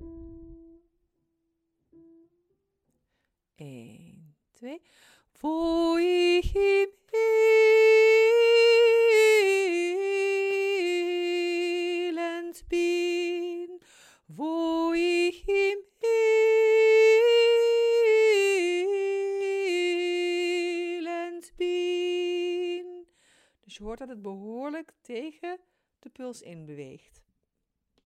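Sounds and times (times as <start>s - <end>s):
soprano singing: 5.4s - 23.1s.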